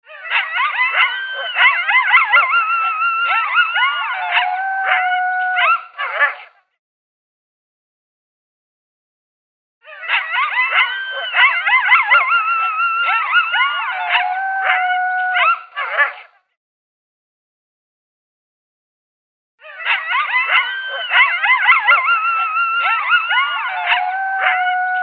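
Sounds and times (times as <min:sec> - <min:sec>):
coyote locator call of yips and howls: 0:00.0 - 0:06.5, 0:09.8 - 0:16.3, 0:19.6 - 0:25.0.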